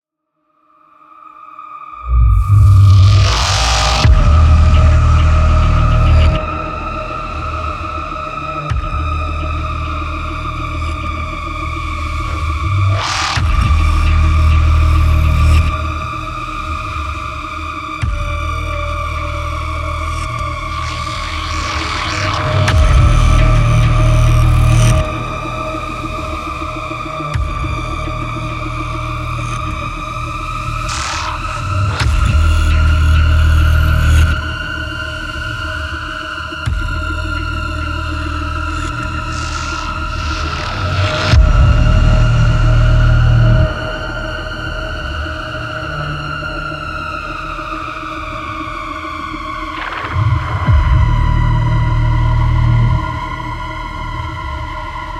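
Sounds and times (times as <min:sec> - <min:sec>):
ambient combat music: 0:01.8 - 0:55.1.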